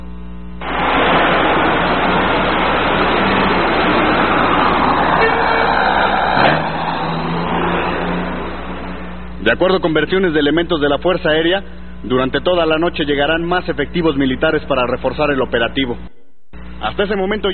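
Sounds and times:
public transport buses arriving at military base 15 in Oaxaca: 0:00.6 - 0:09.6
speech: 0:09.5 - 0:16.2, 0:16.8 - 0:17.5.

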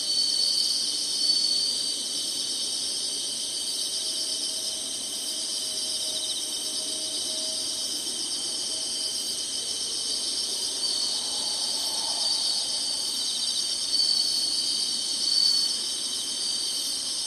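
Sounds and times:
insects buzzing: 0:00.0 - 0:17.2
thin whistled note: 0:10.8 - 0:15.8.

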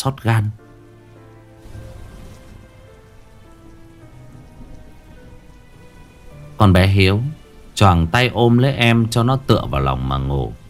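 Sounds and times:
speech: 0:00.0 - 0:00.6, 0:06.6 - 0:10.6
night rain in Saigon dripping from a roof onto a hard surface: 0:00.0 - 0:10.6.

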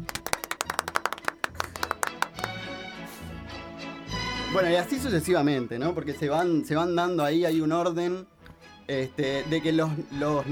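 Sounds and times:
applause: 0:00.0 - 0:02.6
speech: 0:04.5 - 0:08.3, 0:08.9 - 0:10.4.

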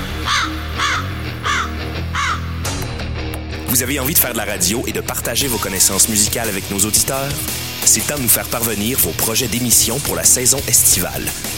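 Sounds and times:
bird cawing: 0:00.0 - 0:02.8
speech: 0:03.8 - 0:11.5.

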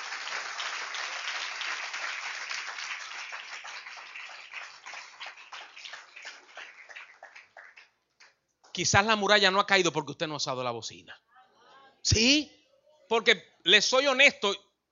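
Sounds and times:
audience applauding: 0:00.0 - 0:08.4
speech: 0:08.8 - 0:11.2, 0:12.0 - 0:14.6.

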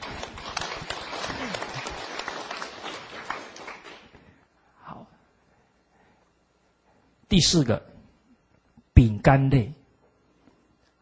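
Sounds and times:
audience applause: 0:00.0 - 0:04.2
speech: 0:07.3 - 0:07.9, 0:09.0 - 0:09.8.

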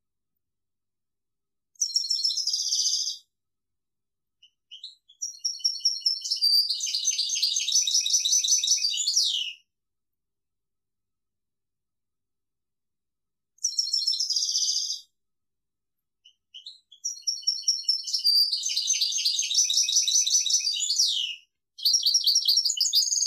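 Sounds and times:
European goldfinch song: 0:01.8 - 0:03.2, 0:04.4 - 0:09.6, 0:13.6 - 0:15.1, 0:16.2 - 0:23.2.

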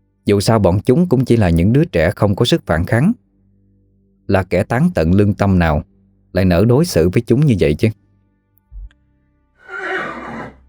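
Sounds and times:
speech: 0:00.3 - 0:03.2, 0:04.3 - 0:08.0
low thump: 0:08.7 - 0:08.9
horse whinnying as it rears up: 0:09.6 - 0:10.6.

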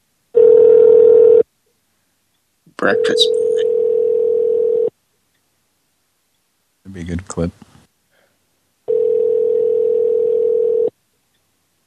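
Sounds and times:
ringback tone from an outgoing telephone call: 0:00.4 - 0:01.4, 0:03.0 - 0:04.9, 0:08.9 - 0:10.9
speech: 0:02.8 - 0:03.7, 0:06.9 - 0:07.7.

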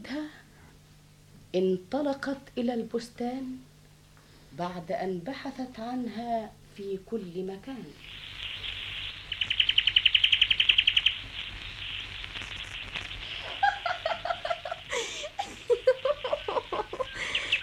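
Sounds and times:
speech: 0:01.5 - 0:03.7, 0:04.6 - 0:08.2
small bird chirping: 0:07.9 - 0:13.6, 0:16.2 - 0:17.6
laughter: 0:13.4 - 0:17.4.

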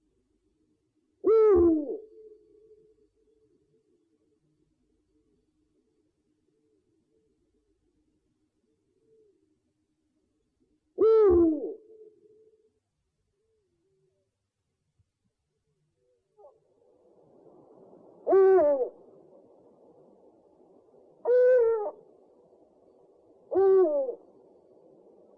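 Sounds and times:
owl giving a two-part hoot: 0:01.2 - 0:02.3, 0:11.0 - 0:12.4, 0:17.4 - 0:25.3.

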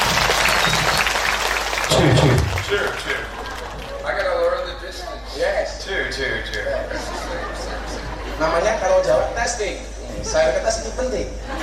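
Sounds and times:
audience applause: 0:00.0 - 0:04.9
speech: 0:01.9 - 0:03.3, 0:08.4 - 0:11.6
laughter: 0:01.9 - 0:04.6, 0:06.2 - 0:11.6.

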